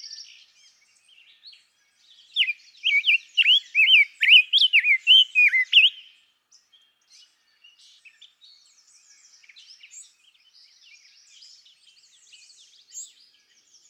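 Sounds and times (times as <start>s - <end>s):
rose-breasted grosbeak singing: 2.4s - 6.2s.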